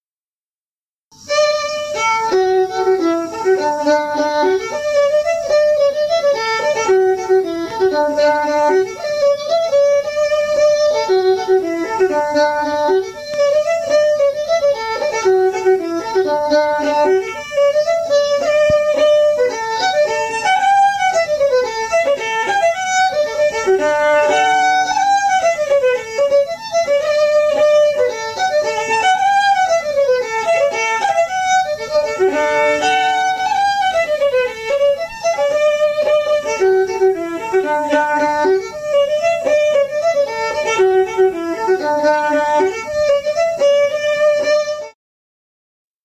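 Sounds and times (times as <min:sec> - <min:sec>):
fiddle: 0:01.1 - 0:45.0.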